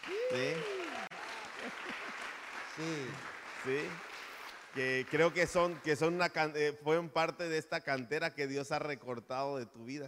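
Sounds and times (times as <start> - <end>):
speech: 0.0 - 0.8, 2.8 - 4.1, 4.7 - 10.0
audience applause: 0.0 - 6.2.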